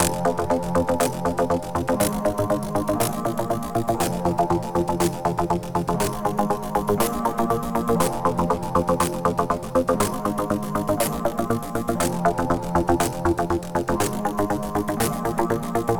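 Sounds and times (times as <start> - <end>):
hard ride cymbal loop: 0.0 - 15.9.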